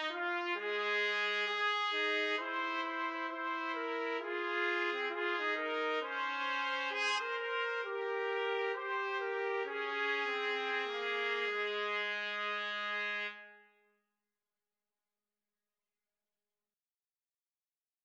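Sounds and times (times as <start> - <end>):
trumpet duet: 0.0 - 13.6.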